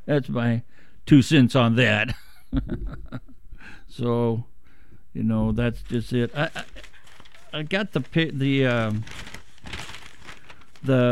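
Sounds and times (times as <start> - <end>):
speech: 0.1 - 4.5, 5.2 - 6.9, 7.5 - 9.3, 10.8 - 11.0
laughter: 2.5 - 3.4, 6.3 - 7.0
paper newsletter from Vietnam Veterans Against the War crinkling and rustling: 5.8 - 11.0.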